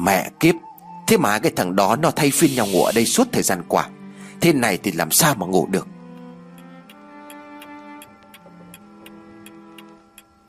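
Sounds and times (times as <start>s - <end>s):
speech: 0.0s - 6.0s
clock ticking: 5.7s - 10.4s.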